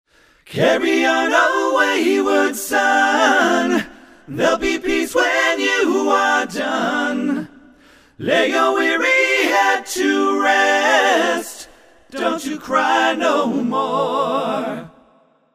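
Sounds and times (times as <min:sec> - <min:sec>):
a cappella singing intro: 0:00.2 - 0:15.4.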